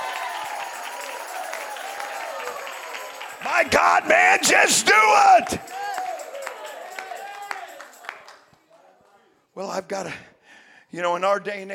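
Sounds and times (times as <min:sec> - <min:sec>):
crowd clapping and cheering: 0:00.0 - 0:08.7
raised voices: 0:03.3 - 0:06.1
speech: 0:03.4 - 0:05.7, 0:09.6 - 0:10.3, 0:10.9 - 0:11.7.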